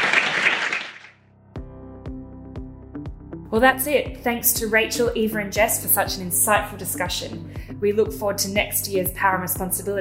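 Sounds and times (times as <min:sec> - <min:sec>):
audience applause: 0:00.0 - 0:01.1
speech: 0:03.5 - 0:09.9.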